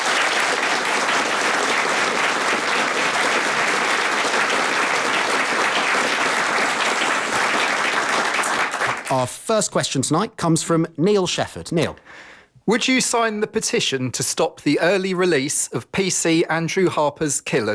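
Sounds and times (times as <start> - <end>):
audience in Milton Keynes applauding a radio question panel: 0.0 - 9.2
speech: 9.1 - 17.7.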